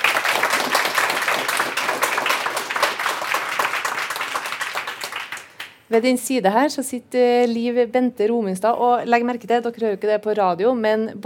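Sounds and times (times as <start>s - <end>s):
audience applause: 0.0s - 5.8s
speech: 5.9s - 11.2s.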